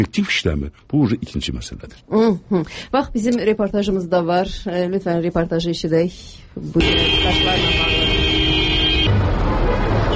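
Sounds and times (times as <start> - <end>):
speech: 0.0 - 8.1
street traffic jam engine rumble: 2.8 - 10.1
car horn blast in a street traffic jam: 6.8 - 10.1.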